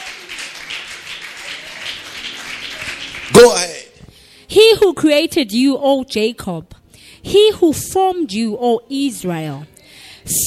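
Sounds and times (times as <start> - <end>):
church congregation clapping during a sermon: 0.0 - 3.9
speech: 4.7 - 10.4.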